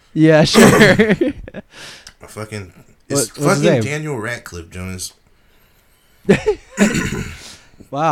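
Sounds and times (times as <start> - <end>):
speech: 0.1 - 5.2, 6.2 - 7.3, 7.9 - 8.1
person coughing: 0.6 - 1.1, 6.7 - 7.6.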